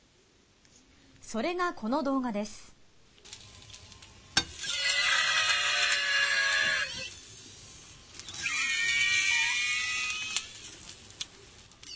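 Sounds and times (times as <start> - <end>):
speech: 1.3 - 2.7
scream-like squealing cry from konjac balls: 4.6 - 7.2, 8.2 - 10.7.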